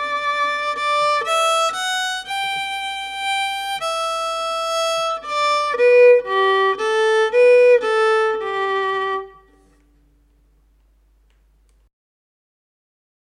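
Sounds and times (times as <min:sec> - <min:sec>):
slow fiddle tune: 0:00.0 - 0:10.1.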